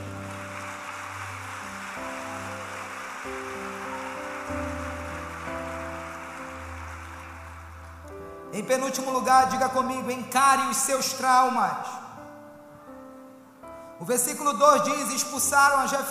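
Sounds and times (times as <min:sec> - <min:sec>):
audience applause: 0:00.0 - 0:08.2
speech: 0:08.6 - 0:12.0, 0:14.0 - 0:16.0.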